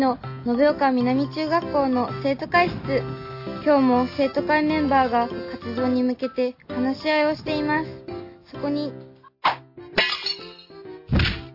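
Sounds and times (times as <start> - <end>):
speech: 0.0 - 9.6
ball breaking window glass: 10.0 - 11.4
hollow thwacks and thunks of a ball: 11.1 - 11.5.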